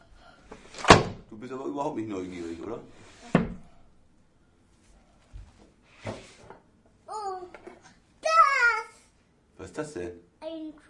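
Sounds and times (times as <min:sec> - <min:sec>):
wooden drawer pushed shut: 0:00.7 - 0:01.2
speech: 0:01.4 - 0:03.5, 0:09.8 - 0:10.3.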